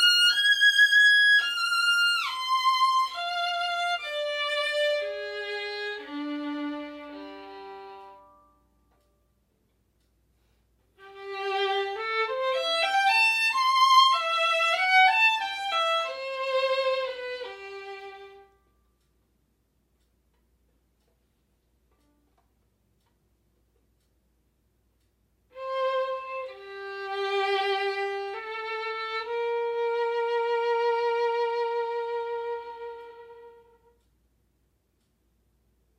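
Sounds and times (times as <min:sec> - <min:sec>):
violin playing classical piece: 0:00.0 - 0:08.6, 0:11.0 - 0:18.6, 0:25.5 - 0:34.0.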